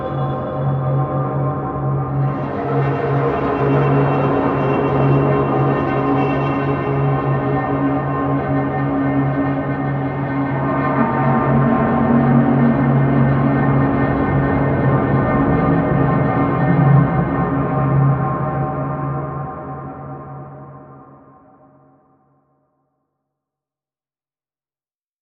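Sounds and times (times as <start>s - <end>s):
drone: 0.0s - 21.3s.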